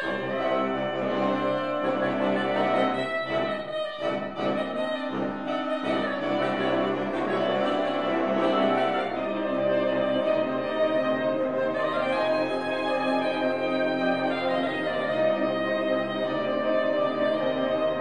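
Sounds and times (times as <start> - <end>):
soprano saxophone: 0.0 - 17.9.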